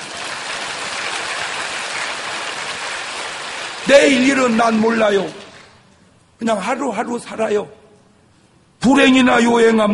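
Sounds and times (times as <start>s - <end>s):
audience clapping: 0.0s - 5.8s
speech: 3.8s - 5.4s, 6.4s - 7.8s, 8.8s - 9.9s.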